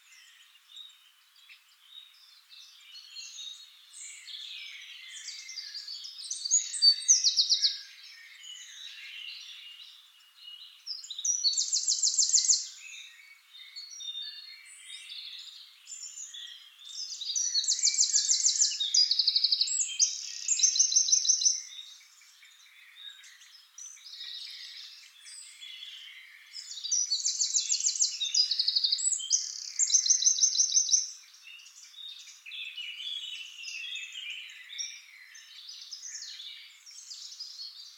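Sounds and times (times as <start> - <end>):
Eurasian wren song: 0.0 - 37.9.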